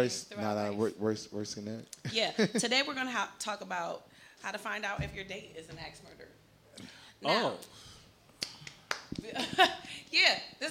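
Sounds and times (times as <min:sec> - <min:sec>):
speech: 0:00.0 - 0:07.9, 0:09.1 - 0:10.6
woman clapping: 0:08.4 - 0:09.3.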